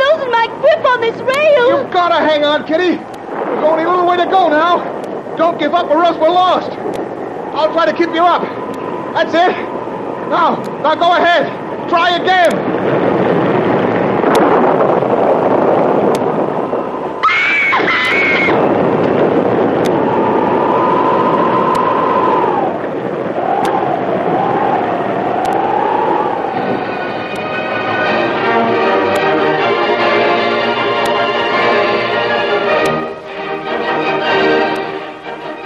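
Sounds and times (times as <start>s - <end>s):
dense buzzing rumble: 0.0s - 17.2s, 18.2s - 35.6s
storm wind rushing: 0.0s - 35.6s
waves crashing over deck: 0.0s - 35.6s
speech: 1.9s - 13.0s.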